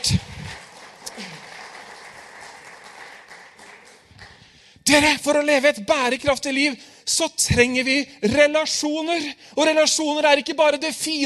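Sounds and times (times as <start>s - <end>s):
audience applause: 0.0s - 4.5s
speech: 4.9s - 11.2s.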